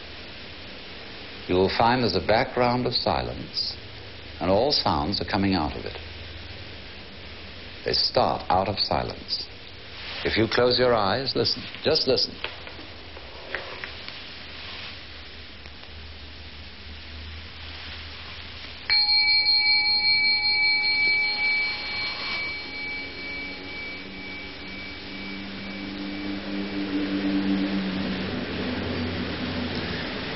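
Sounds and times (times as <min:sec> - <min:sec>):
speech: 0:01.5 - 0:03.8, 0:04.4 - 0:06.1, 0:07.8 - 0:09.5, 0:10.2 - 0:12.6
low hum: 0:18.8 - 0:30.3
bell ringing: 0:18.9 - 0:27.6
low rumble: 0:21.4 - 0:30.3.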